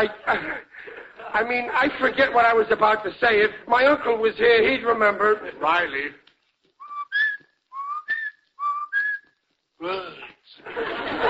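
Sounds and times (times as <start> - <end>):
laughter: 0.0 - 2.6, 10.6 - 11.2
speech: 0.0 - 6.2, 9.8 - 11.2
person whistling a birdlike two-note call: 6.8 - 9.3.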